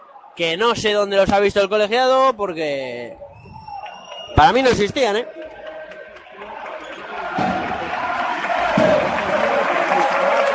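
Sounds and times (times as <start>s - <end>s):
speech: 0.4s - 3.3s, 4.3s - 5.4s
arena crowd applauding: 3.6s - 10.5s.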